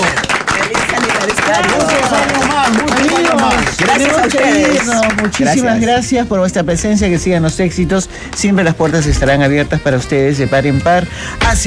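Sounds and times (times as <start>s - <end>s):
audience clapping: 0.0s - 5.9s
speech: 4.3s - 11.6s.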